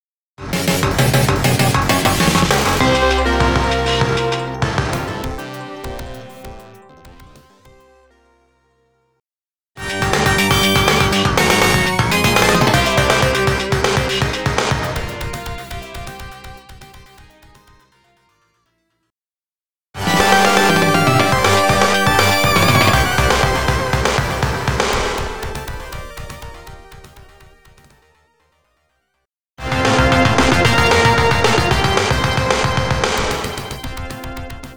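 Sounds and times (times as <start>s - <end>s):
FM sound source rhythm: 0.8s - 7.8s, 9.8s - 17.0s, 20.0s - 27.4s, 29.6s - 34.7s.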